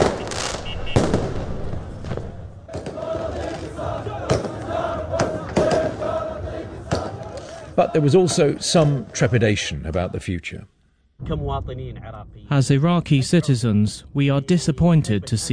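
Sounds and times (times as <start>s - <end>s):
loud sharp bangs: 0.0s - 3.3s, 4.2s - 6.0s
crowd celebrating at night in Baghdad on Sovereignty Day: 2.7s - 9.1s
speech: 7.8s - 15.5s.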